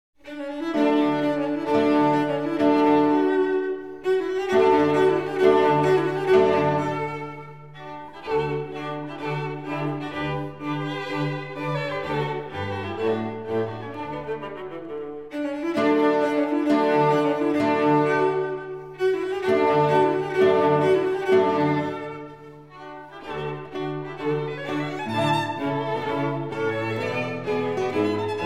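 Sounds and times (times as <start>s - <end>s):
quintet playing a fandango in D major, allegro maestoso: 0.5s - 28.4s.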